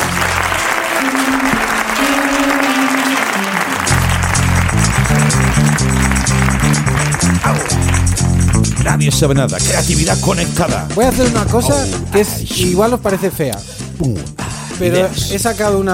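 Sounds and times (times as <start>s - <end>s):
audience clapping: 0.0s - 10.2s
music with held tones and rhythmic bass line: 3.9s - 15.9s
speech: 9.1s - 15.9s.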